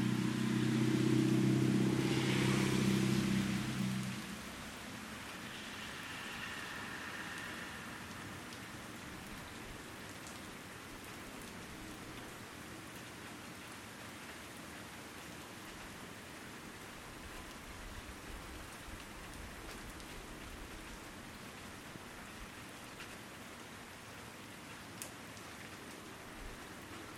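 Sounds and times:
sudden Fort Wayne thunderstorm: 0:00.1 - 0:04.0, 0:05.0 - 0:09.9.

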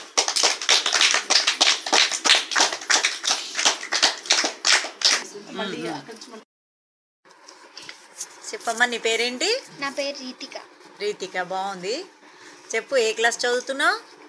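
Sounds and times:
children clapping at a school gathering: 0:00.0 - 0:05.2
speech: 0:05.6 - 0:06.5, 0:08.5 - 0:14.1.

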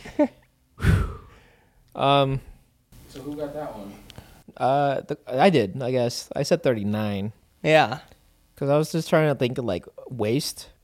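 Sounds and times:
speech: 0:00.2 - 0:00.4, 0:02.0 - 0:02.5, 0:03.1 - 0:04.0, 0:04.6 - 0:10.7
person breathing heavily after standing up: 0:00.8 - 0:01.8.

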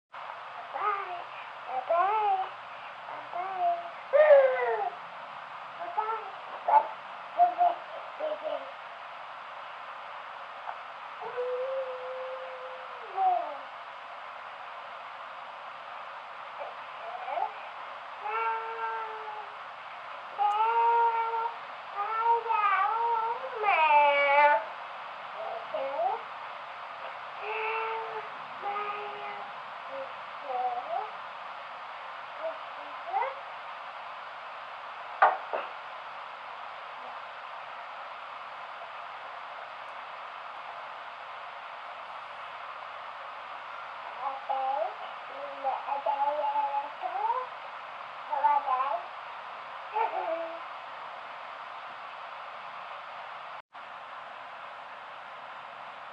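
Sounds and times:
happy babbling after a nap: 0:00.7 - 0:05.0, 0:05.8 - 0:08.8, 0:11.2 - 0:13.7, 0:16.6 - 0:17.6, 0:18.2 - 0:19.6, 0:20.4 - 0:24.7, 0:25.4 - 0:26.2, 0:27.4 - 0:31.2, 0:32.4 - 0:33.4, 0:44.2 - 0:47.6, 0:48.3 - 0:49.1, 0:49.9 - 0:50.6.

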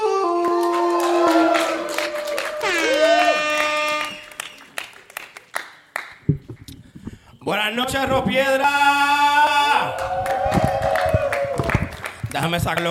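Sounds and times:
audience applause and cheering: 0:00.4 - 0:05.6, 0:09.6 - 0:12.4
speech: 0:07.5 - 0:09.2, 0:12.4 - 0:12.8.

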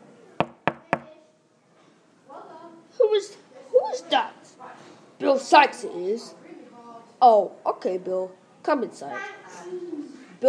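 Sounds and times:
knocking on a door: 0:00.4 - 0:01.1
speech: 0:05.5 - 0:06.4, 0:07.2 - 0:09.9.

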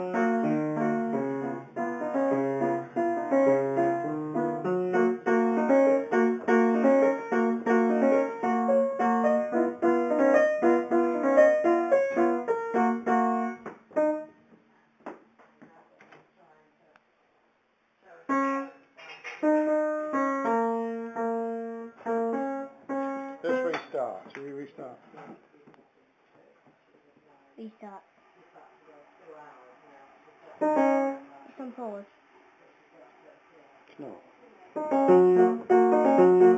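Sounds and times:
simple tune being played: 0:00.0 - 0:14.3, 0:18.3 - 0:18.8, 0:19.4 - 0:23.7, 0:34.8 - 0:36.5.

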